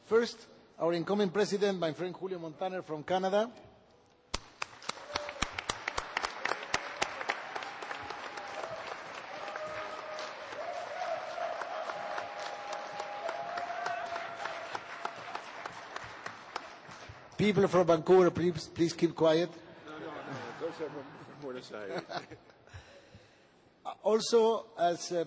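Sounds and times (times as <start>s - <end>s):
speech: 0.1s - 3.7s, 17.4s - 19.6s, 20.6s - 22.6s, 24.0s - 25.2s
round of applause: 4.3s - 17.4s
laughter: 19.8s - 22.7s.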